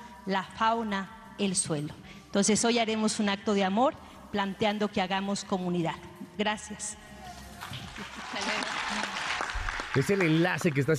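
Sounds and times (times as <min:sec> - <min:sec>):
speech: 0:00.2 - 0:07.1, 0:08.1 - 0:09.2, 0:10.0 - 0:10.9
group applauding: 0:07.6 - 0:10.9.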